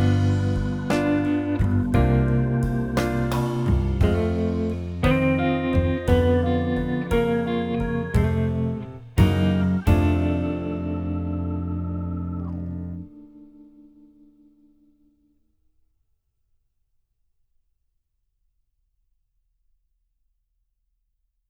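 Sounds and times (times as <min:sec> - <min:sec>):
jazz backing track: 0:00.0 - 0:14.0.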